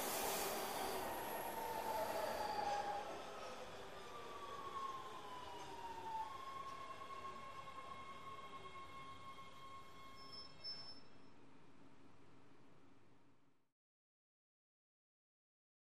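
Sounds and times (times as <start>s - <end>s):
subway train beep: 0.0s - 4.0s, 7.8s - 11.2s
subway train hum: 0.0s - 10.3s.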